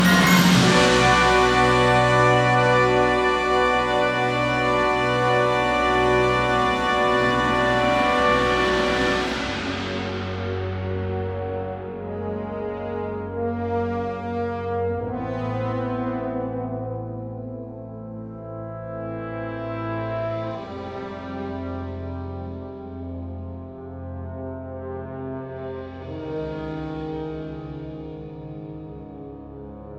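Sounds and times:
wind band playing: 0.0 - 26.3.

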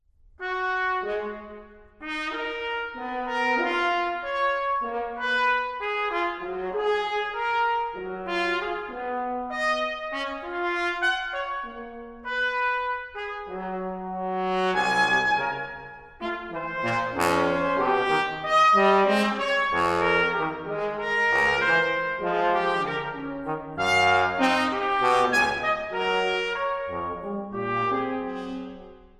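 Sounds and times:
brass quintet playing moderato: 0.4 - 29.1.

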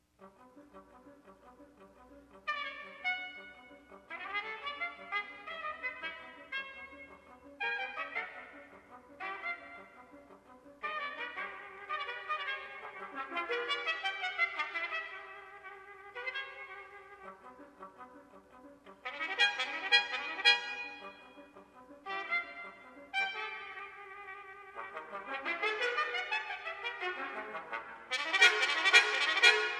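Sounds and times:
brass quintet playing a scherzo: 0.2 - 29.7.

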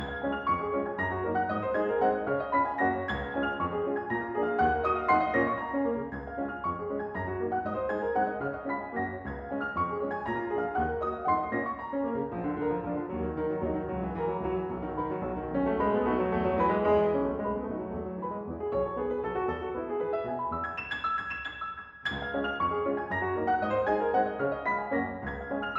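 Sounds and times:
piano waltz for four hands: 0.0 - 25.7.

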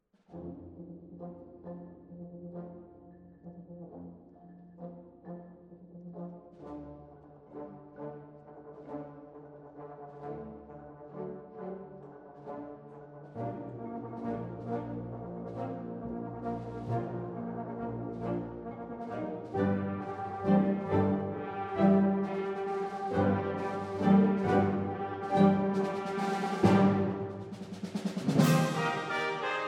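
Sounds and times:
wind orchestra march: 6.2 - 29.6.

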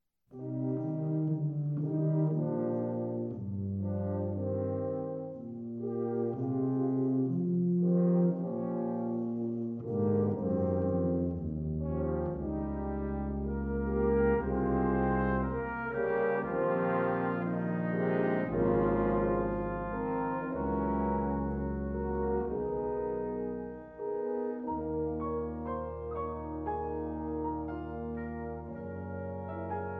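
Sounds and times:
brass: 0.3 - 29.9
piano: 0.3 - 29.9.

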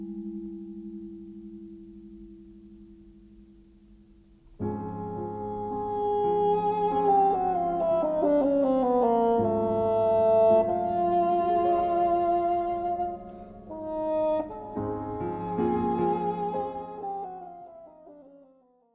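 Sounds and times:
bassoon jazz ballad: 4.6 - 18.1.

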